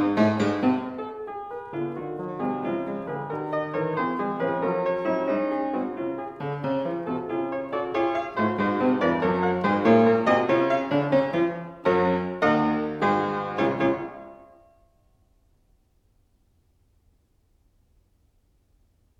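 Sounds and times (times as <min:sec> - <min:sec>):
classical sonata scherzo in C sharp minor: 0:00.0 - 0:14.7.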